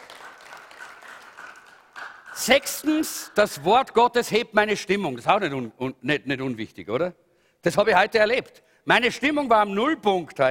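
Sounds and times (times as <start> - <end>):
crowd applauding: 0.0 - 3.5
speech: 2.4 - 10.4.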